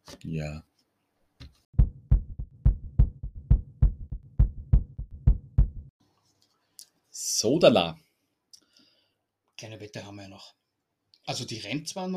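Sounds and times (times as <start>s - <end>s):
speech: 0.2s - 0.7s, 7.2s - 8.0s, 9.6s - 10.6s, 11.3s - 12.1s
heartbeat sound effect thumping: 1.8s - 5.9s.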